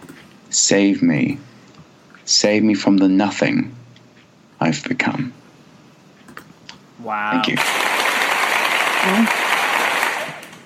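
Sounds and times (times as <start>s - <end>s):
speech: 0.5s - 1.5s, 2.3s - 3.8s, 4.6s - 5.4s, 7.0s - 7.9s, 9.0s - 9.4s
students' applause: 7.4s - 10.6s.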